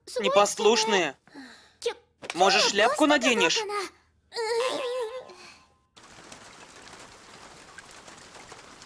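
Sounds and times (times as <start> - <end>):
speech: 0.1 - 1.2, 1.8 - 4.5
heavy rain pouring: 6.0 - 8.8.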